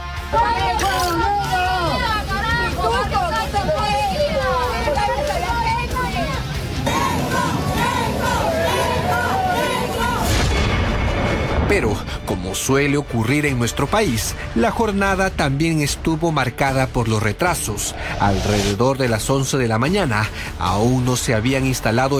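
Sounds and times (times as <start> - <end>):
crowd booing and jeering: 0.0 - 11.3
speech: 11.8 - 22.1.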